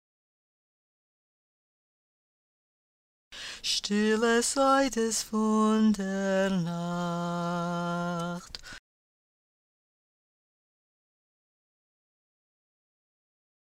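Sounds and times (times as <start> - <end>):
tenor singing verses and refrain: 3.4 - 8.8.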